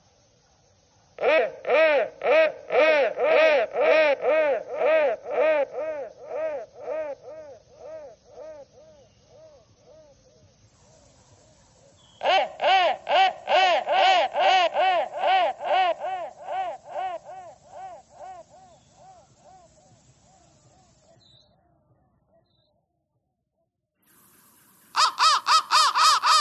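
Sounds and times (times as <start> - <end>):
crow giving fast harsh caws: 1.2 - 9.5, 12.2 - 19.8, 25.0 - 26.3.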